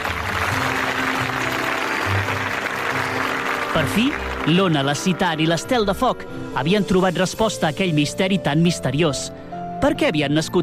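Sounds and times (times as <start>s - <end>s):
applause: 0.0s - 5.3s
speech: 3.8s - 10.6s.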